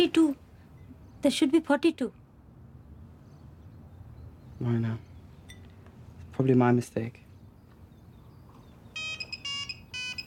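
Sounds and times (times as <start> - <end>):
speech: 0.0 - 0.4, 1.2 - 2.2, 4.6 - 5.1, 6.4 - 7.2
telephone ringing with an electronic ringtone: 9.0 - 10.2.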